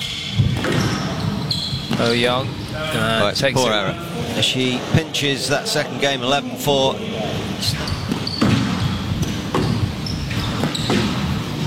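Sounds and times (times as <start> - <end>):
busy noise: 0.0 - 11.6
ball strikes in a women's racket match drop shot: 0.1 - 2.2, 8.0 - 11.6
speech: 2.0 - 8.0.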